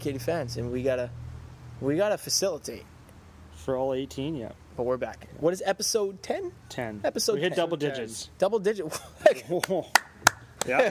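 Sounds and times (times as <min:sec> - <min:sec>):
speech: 0:00.0 - 0:02.9, 0:03.6 - 0:10.0, 0:10.6 - 0:10.8
people talking and laughing: 0:07.0 - 0:10.8
slow hand clapping: 0:09.6 - 0:10.8.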